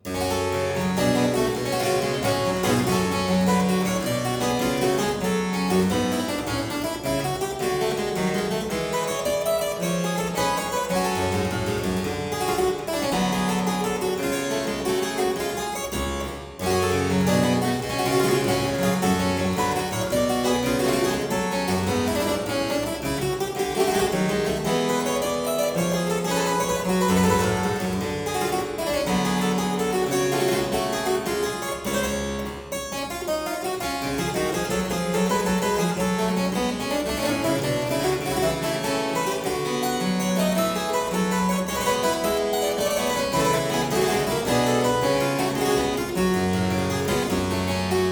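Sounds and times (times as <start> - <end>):
harpsichord piece in G minor: 0.0 - 48.0.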